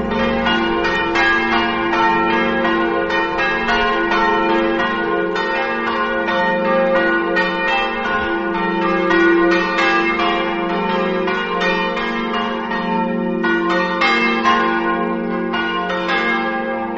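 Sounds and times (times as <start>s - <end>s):
church bells ringing in Medeuzza: 0.0s - 16.9s.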